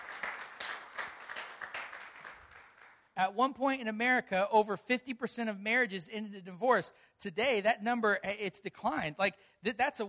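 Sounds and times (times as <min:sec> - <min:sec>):
audience clapping: 0:00.0 - 0:03.2
speech: 0:03.2 - 0:10.0.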